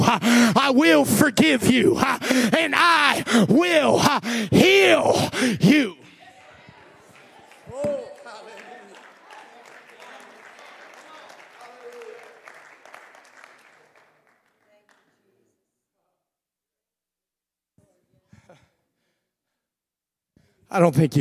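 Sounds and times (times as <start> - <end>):
speech: 0.1 - 6.0, 20.7 - 21.1
audience hand clapping: 7.0 - 15.2.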